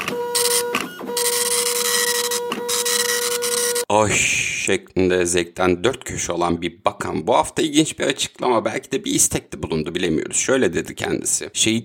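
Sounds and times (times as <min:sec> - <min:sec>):
insurance policy printer whirring: 0:00.0 - 0:03.9
speech: 0:03.9 - 0:11.8.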